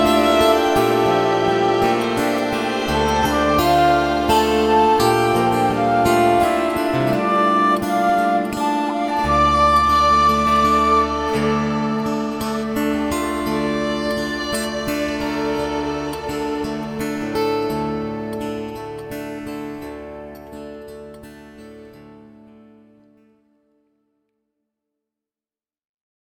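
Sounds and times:
waltz music: 0.0 - 18.5.

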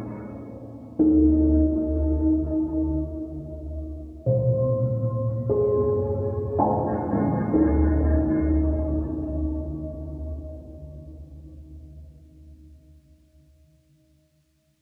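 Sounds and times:
forest piano music: 0.0 - 11.0.

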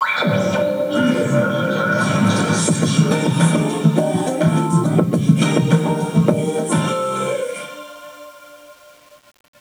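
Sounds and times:
karaoke backing music: 0.1 - 8.6.

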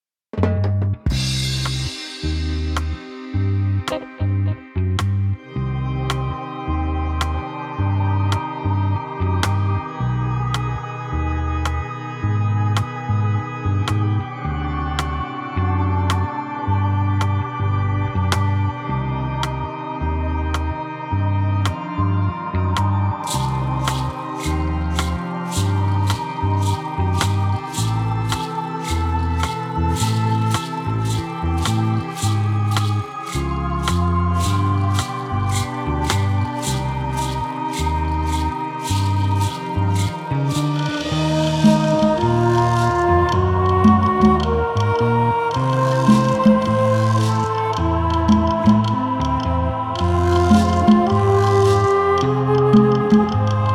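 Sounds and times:
bass: 0.3 - 53.7.

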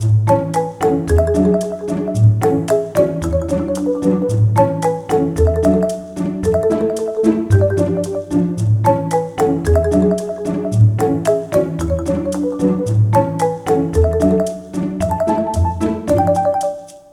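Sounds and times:
game cutscene background music: 0.3 - 17.1.

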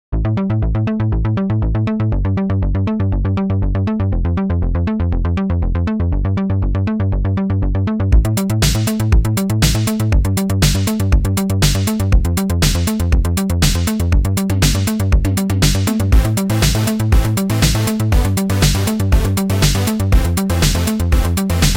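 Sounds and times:
caveman groove music: 0.2 - 21.7.

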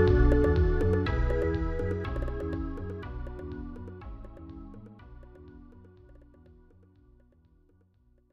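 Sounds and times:
SNES sub menu music: 0.0 - 6.4.

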